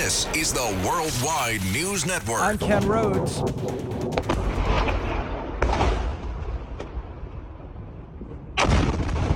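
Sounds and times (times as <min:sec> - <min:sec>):
speech: 0:00.1 - 0:04.5
Iranian missile crashing and exploding at the Mufawak Salti Air Base in Jordan: 0:04.1 - 0:07.7, 0:08.5 - 0:09.3.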